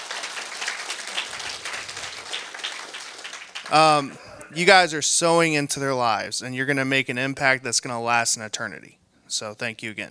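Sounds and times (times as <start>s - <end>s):
audience applause: 0.0s - 4.5s
speech: 3.7s - 10.0s.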